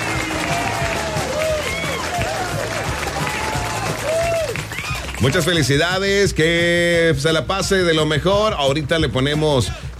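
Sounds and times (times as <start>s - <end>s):
applause: 0.0s - 6.0s
speech: 5.2s - 9.8s.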